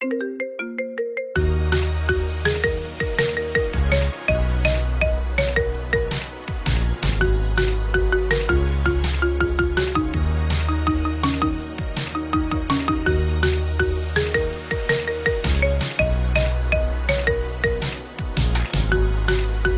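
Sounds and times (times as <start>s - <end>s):
marimba remix: 0.0s - 19.7s.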